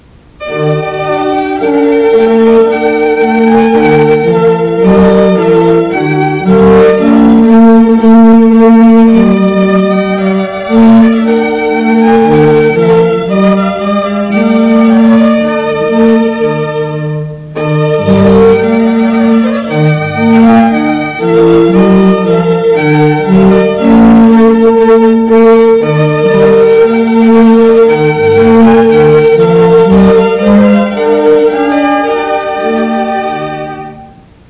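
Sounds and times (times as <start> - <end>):
trumpet piece: 0.0 - 34.4.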